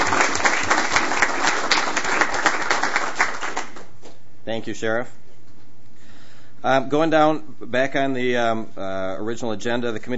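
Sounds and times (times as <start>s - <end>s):
group applause: 0.0s - 4.0s
speech: 4.6s - 5.2s, 6.6s - 10.1s.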